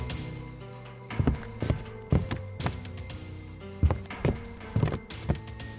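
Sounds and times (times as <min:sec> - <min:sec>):
hurrying footsteps: 0:01.2 - 0:03.2, 0:03.8 - 0:05.7.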